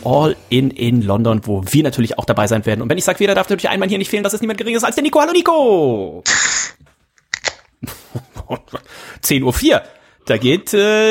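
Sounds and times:
speech: 0.0s - 6.8s, 7.8s - 11.0s
bottle of Bitburger Fassbrause opening: 6.3s - 7.7s
laughter: 7.8s - 9.0s.

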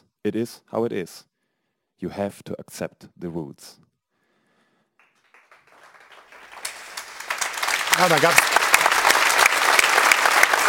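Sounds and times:
speech: 0.2s - 1.3s, 2.0s - 3.9s, 8.0s - 8.6s
audience applause in Frankfurt: 5.0s - 10.6s.

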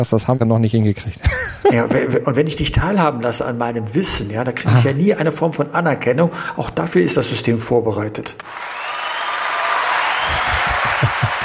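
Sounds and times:
speech: 0.0s - 8.8s
laughter: 1.2s - 2.2s, 10.0s - 11.4s
applause sound effect: 8.4s - 11.4s.

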